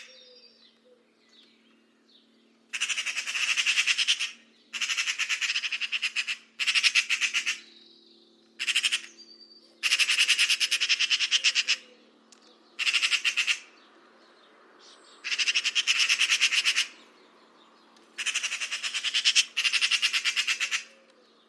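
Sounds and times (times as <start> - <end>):
bird harsh pulsed calls: 2.7 - 7.9, 8.6 - 12.0, 12.8 - 13.8, 15.1 - 17.1, 18.1 - 21.4.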